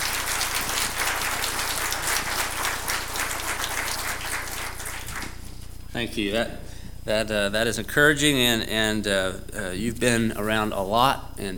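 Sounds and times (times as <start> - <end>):
crowd applause: 0.0 - 5.5
speech: 6.0 - 11.5.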